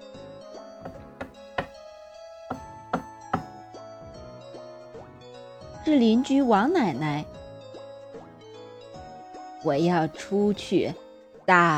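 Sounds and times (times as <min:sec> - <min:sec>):
knocking on a door: 0:00.8 - 0:01.8, 0:02.5 - 0:03.6
speech: 0:05.8 - 0:07.4, 0:09.6 - 0:11.7.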